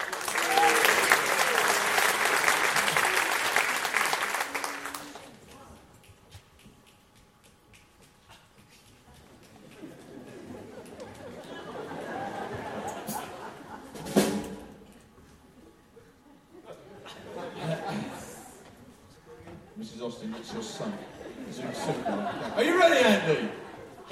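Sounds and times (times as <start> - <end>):
crowd clapping: 0.0 - 13.9
laughter: 9.5 - 14.3, 15.5 - 24.1.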